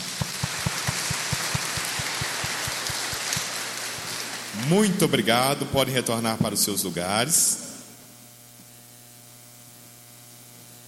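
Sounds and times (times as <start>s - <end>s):
regular low thumping beat: 0.0s - 3.5s
crowd applauding: 0.0s - 4.9s
speech: 4.6s - 7.6s.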